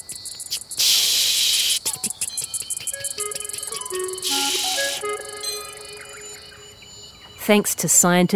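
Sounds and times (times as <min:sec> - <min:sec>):
cicadas calling: 0:00.0 - 0:07.5
higher tonal chirps: 0:01.5 - 0:07.6
speech: 0:07.5 - 0:08.3.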